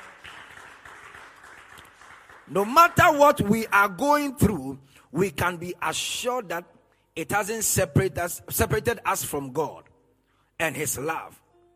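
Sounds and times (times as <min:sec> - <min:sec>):
audience clapping: 0:00.0 - 0:04.0
speech: 0:02.5 - 0:09.9, 0:10.6 - 0:11.4.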